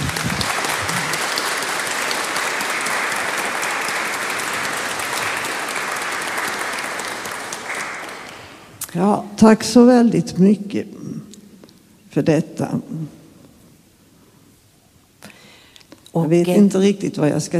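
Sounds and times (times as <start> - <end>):
audience applauding warmly: 0.0 - 8.8
speech: 9.0 - 11.2, 12.2 - 13.2, 16.2 - 17.5.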